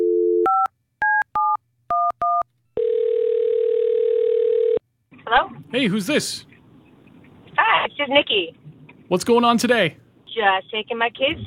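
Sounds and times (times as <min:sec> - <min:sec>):
telephone dial tone: 0:00.0 - 0:04.8
telephone ring tone: 0:01.4 - 0:04.8
speech: 0:05.7 - 0:06.5, 0:08.1 - 0:11.4.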